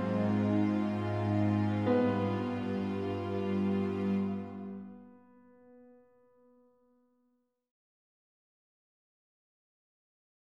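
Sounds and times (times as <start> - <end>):
ambient music: 0.0 - 5.9.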